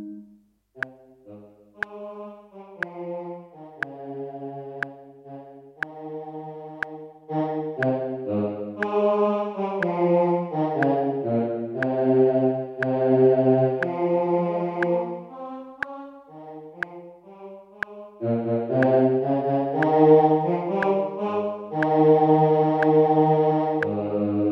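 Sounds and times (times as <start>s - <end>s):
choral anthem: 0.8s - 24.4s.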